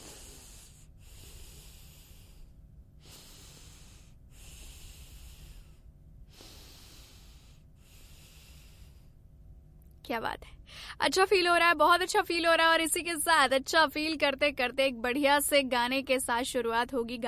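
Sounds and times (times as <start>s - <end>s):
deep long breaths during a guided wellness ritual: 0.0s - 9.2s
speech: 10.1s - 17.2s.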